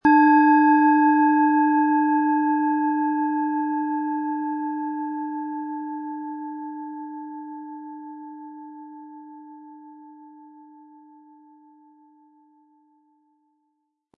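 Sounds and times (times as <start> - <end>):
Eros planetary singing bowl struck with mallet: 0.0 - 12.4.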